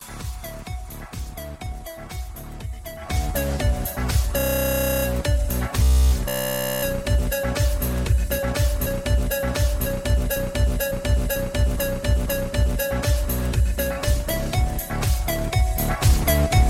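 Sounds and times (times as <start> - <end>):
Samsung A20 ringtone: 2.8 - 5.7, 6.3 - 16.6.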